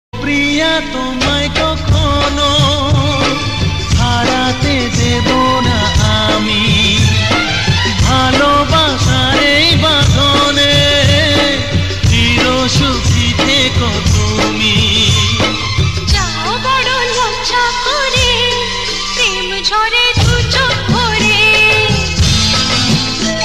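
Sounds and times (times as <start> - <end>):
romantic Bangali music: 0.2 - 23.4.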